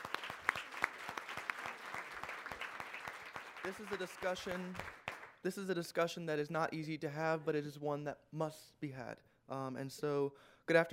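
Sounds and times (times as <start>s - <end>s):
audience applause: 0.0s - 5.4s
speech: 3.6s - 10.9s.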